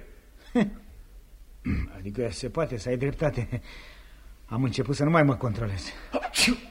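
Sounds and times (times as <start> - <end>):
speech: 0.5 - 0.8, 1.6 - 6.6
sneeze: 6.1 - 6.6.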